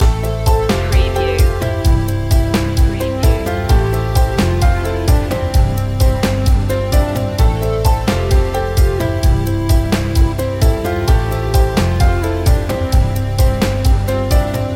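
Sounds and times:
cheerful inspiration music loop: 0:00.0 - 0:14.7.

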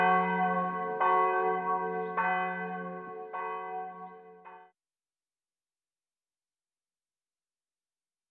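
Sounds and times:
church bell ringing: 0:00.0 - 0:04.7.

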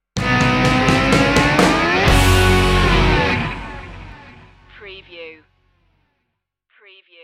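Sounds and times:
music sting: 0:00.1 - 0:04.7.

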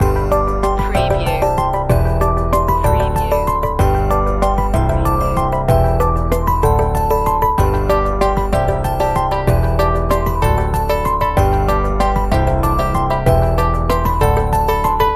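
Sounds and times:
light signals loop: 0:00.0 - 0:14.6.

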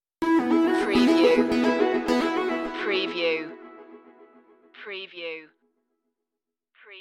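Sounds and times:
music stinger: 0:00.2 - 0:04.6.

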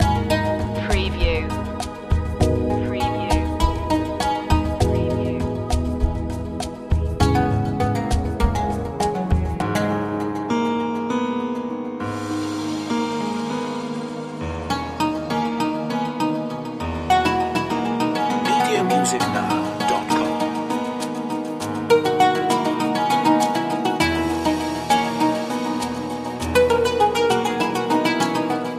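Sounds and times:
music loop: 0:00.0 - 0:28.7.

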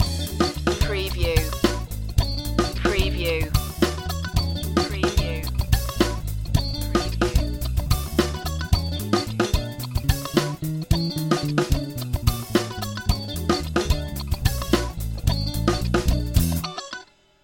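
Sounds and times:
music loop: 0:00.0 - 0:16.6.

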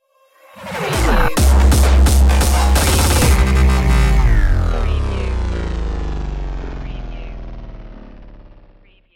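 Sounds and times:
destroyed stinger: 0:00.8 - 0:09.0.

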